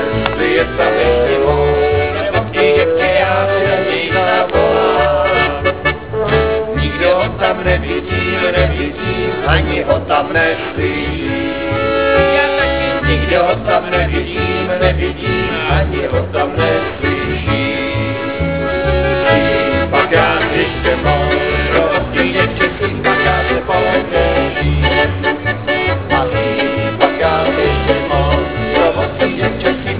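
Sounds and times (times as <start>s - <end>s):
funfair orchestra: 0.0s - 29.9s.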